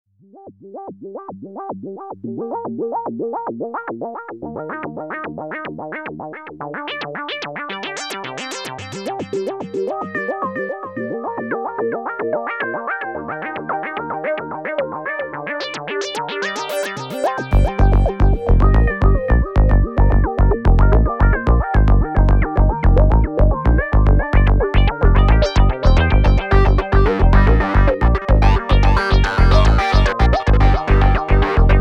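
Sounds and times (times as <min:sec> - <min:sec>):
electronic music: 0:06.8 - 0:31.7.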